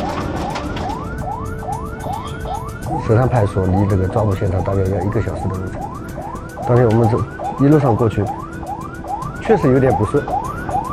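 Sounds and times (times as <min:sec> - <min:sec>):
police car siren wailing: 0:00.0 - 0:10.9
traffic rumble: 0:00.0 - 0:10.9
speech: 0:03.1 - 0:05.9, 0:06.7 - 0:08.4, 0:09.5 - 0:10.4.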